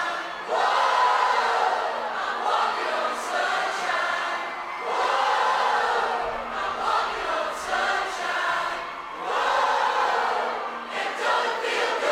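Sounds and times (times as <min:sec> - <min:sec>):
crowd: 0:00.0 - 0:12.1.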